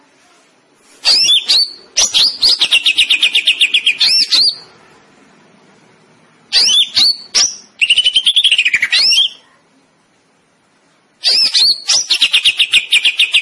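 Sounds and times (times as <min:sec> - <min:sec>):
greater green leafbird song with trills and whistles: 0:01.0 - 0:04.7, 0:06.5 - 0:09.4, 0:11.2 - 0:13.4.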